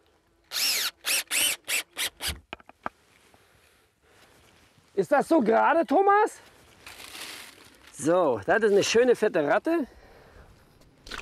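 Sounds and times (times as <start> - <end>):
power drill driving a screw into a wooden post: 0.5 - 2.4
speech: 5.0 - 6.5, 8.0 - 10.0.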